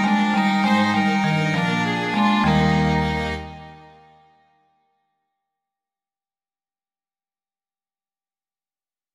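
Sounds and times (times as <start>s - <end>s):
double bass: 0.0s - 3.7s
two violins: 0.0s - 4.2s.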